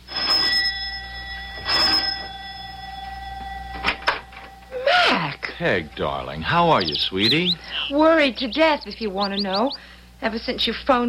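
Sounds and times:
doorbell ringing: 0.0s - 7.9s
speech: 5.6s - 11.0s.

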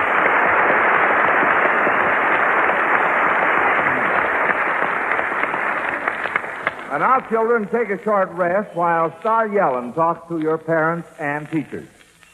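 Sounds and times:
round of applause: 0.0s - 8.3s
speech: 7.0s - 12.3s.

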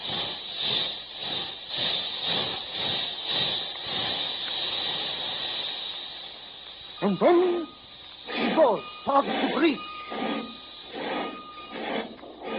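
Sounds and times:
steam train chuffing and hissing as it comes to a stop: 0.0s - 12.5s
speech: 7.1s - 7.8s, 8.4s - 9.9s.

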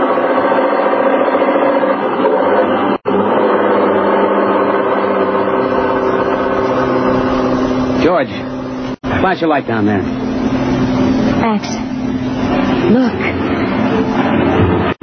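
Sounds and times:
truck engine labouring up a hill: 0.0s - 15.0s
speech: 9.3s - 10.2s, 11.5s - 11.8s.

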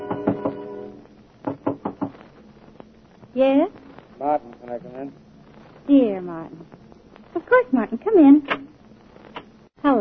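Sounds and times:
knocking on a door: 0.0s - 0.6s, 1.4s - 2.2s
speech: 3.4s - 5.2s, 5.9s - 6.8s, 7.4s - 8.8s.

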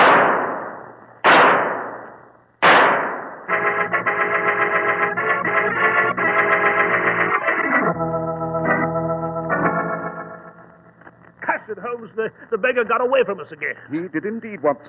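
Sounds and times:
pistol shots fired at a fleeing killer: 0.0s - 3.5s
sustained dramatic music chord: 3.5s - 7.1s, 7.8s - 11.0s
speech: 12.2s - 14.8s.

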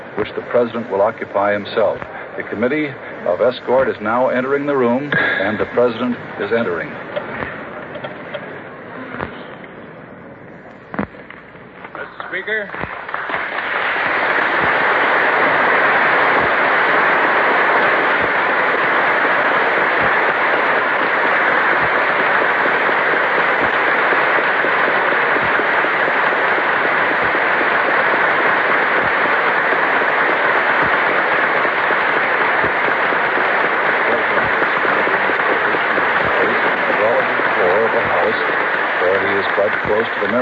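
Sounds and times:
speech: 0.2s - 7.1s
tremendous applause in a chamber: 12.2s - 40.3s.

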